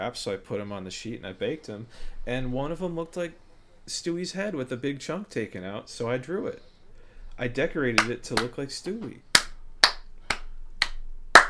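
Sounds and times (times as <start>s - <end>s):
speech: 0.0s - 6.7s, 7.4s - 9.3s
hand claps for audio syncing: 8.0s - 11.4s.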